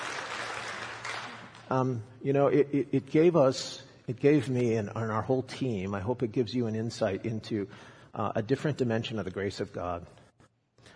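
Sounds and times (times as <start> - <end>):
audience clapping: 0.0 - 1.7
speech: 1.7 - 10.2.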